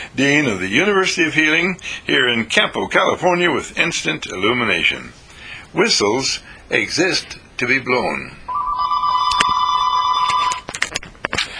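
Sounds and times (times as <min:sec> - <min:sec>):
speech: 0:00.2 - 0:08.4
telephone ringing: 0:08.5 - 0:10.7
sharp clicks and clatter: 0:10.3 - 0:11.5.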